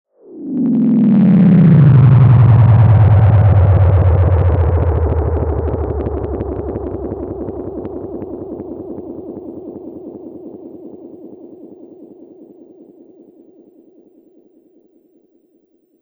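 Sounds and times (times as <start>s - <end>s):
Memory Man saturation effect: 0.4s - 11.2s.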